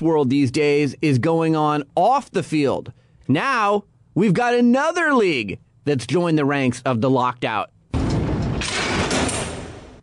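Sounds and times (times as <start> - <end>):
speech: 0.0 - 7.8
heavy metal jail door slamming shut: 7.9 - 10.0.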